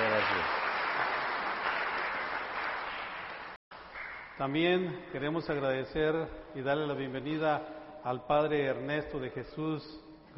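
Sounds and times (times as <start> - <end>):
audience applause: 0.0 - 4.2
speech: 4.4 - 10.3.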